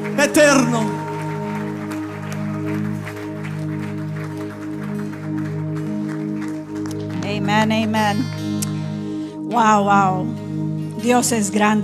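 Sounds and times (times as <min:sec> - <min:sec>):
audience applause: 0:00.0 - 0:07.6
speech: 0:00.2 - 0:01.0, 0:07.6 - 0:08.4, 0:09.5 - 0:10.4, 0:11.0 - 0:11.8.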